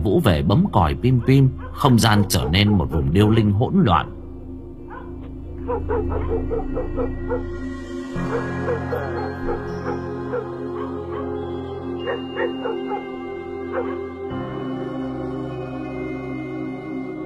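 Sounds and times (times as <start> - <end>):
speech: 0.0 - 4.2, 5.7 - 9.8, 13.7 - 14.6
village dogs barking: 0.8 - 3.3, 4.8 - 14.4.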